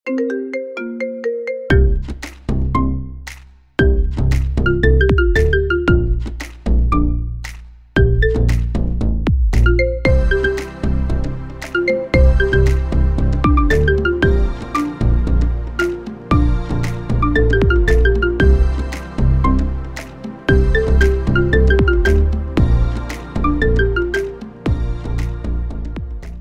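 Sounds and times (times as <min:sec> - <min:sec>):
marimba remix: 0:00.0 - 0:26.3.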